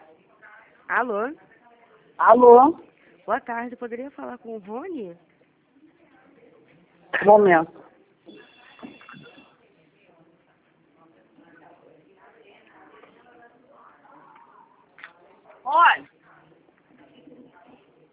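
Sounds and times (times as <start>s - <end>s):
speech: 0.9s - 1.5s, 2.2s - 5.3s, 7.1s - 7.8s, 15.7s - 16.1s
telephone ringing: 8.3s - 9.5s.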